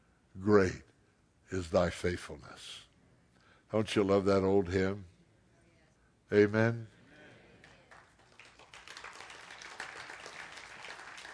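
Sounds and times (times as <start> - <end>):
speech: 0.4 - 0.9, 1.5 - 2.9, 3.7 - 5.1, 6.3 - 7.0
audience clapping: 7.6 - 11.3.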